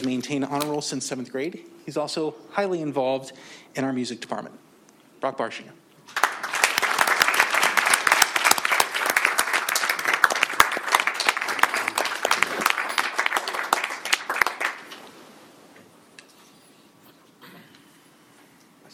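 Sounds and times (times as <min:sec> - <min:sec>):
speech: 0:00.0 - 0:06.2
audience applause: 0:06.1 - 0:15.1.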